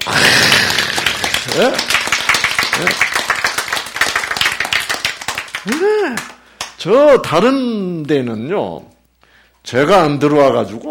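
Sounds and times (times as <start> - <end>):
crowd clapping: 0.0 - 6.8
speech: 1.6 - 1.9, 2.8 - 3.2, 5.6 - 8.9, 9.7 - 10.8.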